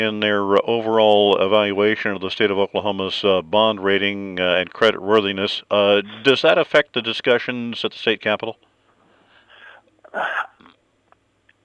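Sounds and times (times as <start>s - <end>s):
speech: 0.0s - 8.7s, 10.1s - 10.5s
person gasping while thinking: 9.2s - 10.6s.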